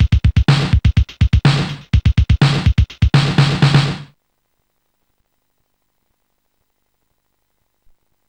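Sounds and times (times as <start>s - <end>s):
rhythm: 0.0s - 4.1s.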